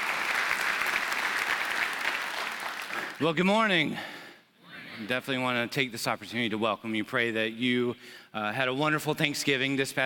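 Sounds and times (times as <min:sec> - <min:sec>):
audience applause: 0:00.0 - 0:03.3
speech: 0:03.2 - 0:04.2, 0:05.0 - 0:10.0.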